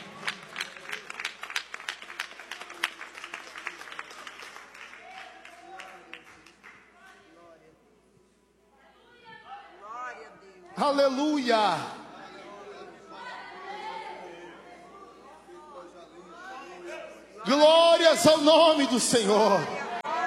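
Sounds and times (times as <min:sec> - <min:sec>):
audience applauding: 0:00.0 - 0:07.2
speech: 0:10.8 - 0:12.0, 0:17.5 - 0:19.8.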